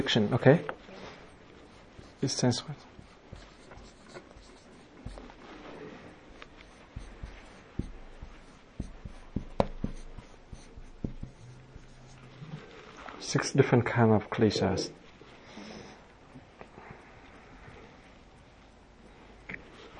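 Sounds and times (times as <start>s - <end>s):
speech: 0.0s - 0.8s, 2.2s - 2.9s, 13.3s - 15.0s
pen writing a word on paper: 1.3s - 5.4s, 6.3s - 12.3s.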